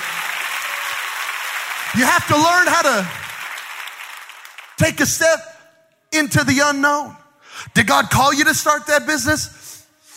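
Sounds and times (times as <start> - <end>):
audience clapping: 0.0 - 5.0
speech: 1.9 - 3.2, 4.8 - 5.5, 6.1 - 9.8.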